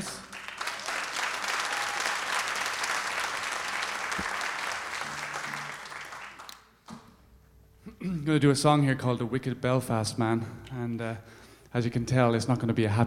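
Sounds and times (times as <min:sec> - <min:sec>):
audience applause: 0:00.0 - 0:06.8
speech: 0:08.2 - 0:13.0.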